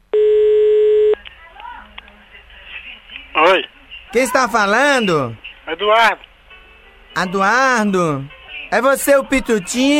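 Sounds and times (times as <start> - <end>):
telephone tone while placing a call: 0.1 - 1.2
speech: 3.6 - 6.3, 7.2 - 9.9.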